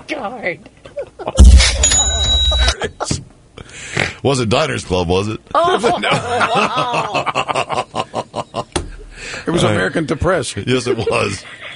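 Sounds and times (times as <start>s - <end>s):
speech: 0.1s - 2.2s, 2.8s - 7.8s, 9.5s - 11.6s
cash register cha-ching sound effect: 1.4s - 2.8s
laughter: 5.6s - 8.8s, 10.8s - 11.7s.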